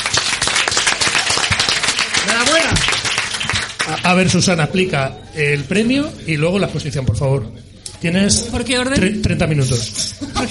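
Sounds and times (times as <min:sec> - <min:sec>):
applause: 0:00.0 - 0:04.3
speech: 0:04.0 - 0:10.5
laughter: 0:10.0 - 0:10.5.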